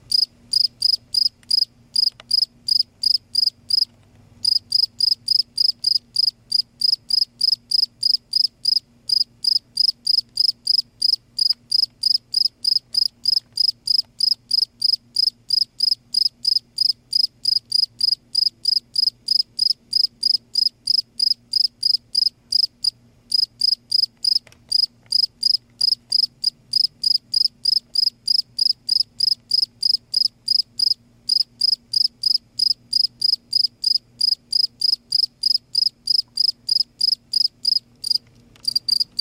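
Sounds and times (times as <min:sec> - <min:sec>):
cricket chirping: 0:00.1 - 0:22.7, 0:23.3 - 0:39.1.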